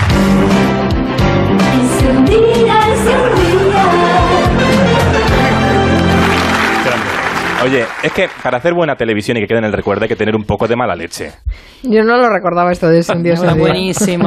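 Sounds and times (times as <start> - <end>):
TV show theme tune: 0.0 - 9.3
laughter: 4.6 - 8.4, 13.4 - 14.2
speech: 7.7 - 14.2.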